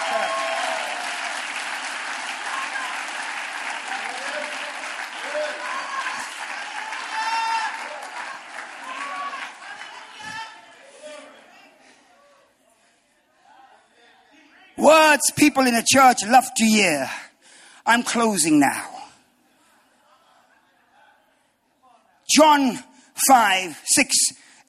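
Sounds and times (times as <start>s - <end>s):
church audience clapping hands: 0.0s - 10.9s
voices cheering: 0.0s - 11.4s
speech: 15.1s - 17.2s, 17.8s - 18.9s, 22.4s - 24.6s.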